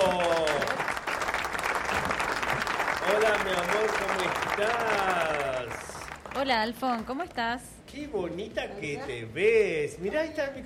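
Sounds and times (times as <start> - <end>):
studio audience applause greeting a guest on a live television show: 0.0 - 6.7
speech: 3.3 - 5.8, 6.4 - 10.6.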